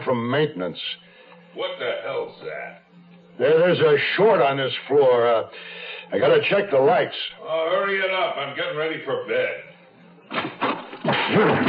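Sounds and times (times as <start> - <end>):
speech: 0.1 - 9.7, 11.3 - 11.6
crash and scuffle: 10.3 - 11.6
door slammed hard against someone: 10.3 - 11.6.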